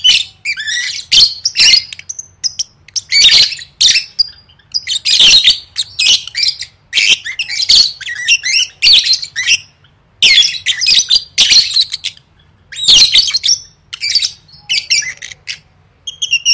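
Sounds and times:
lovebird chattering: 0.0 - 16.5.

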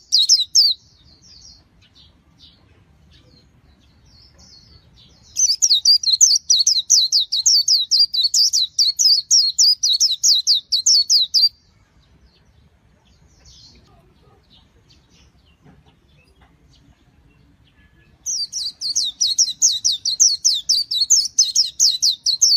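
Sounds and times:
white-eye chirps: 0.0 - 22.5.

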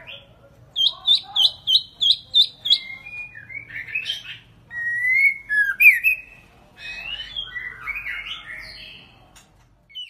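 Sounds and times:
White-rumped shama singing whistles: 1.7 - 8.9.

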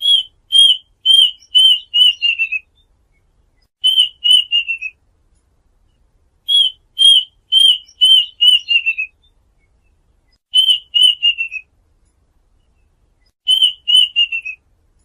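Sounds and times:
duck whistled calls: 0.0 - 2.6, 3.8 - 5.0, 6.5 - 9.1, 10.5 - 11.7, 13.5 - 14.6.

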